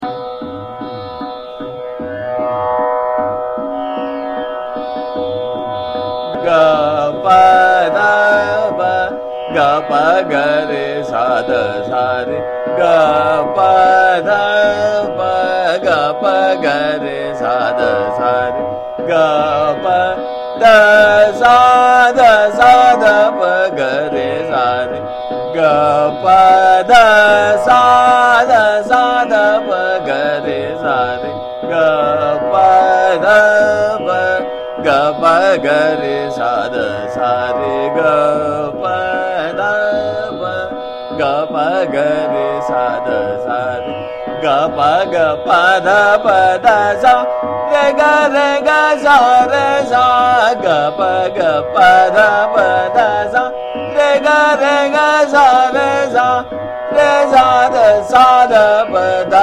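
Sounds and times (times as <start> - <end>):
person singing sargam notes in Trital: 0.0 - 59.4.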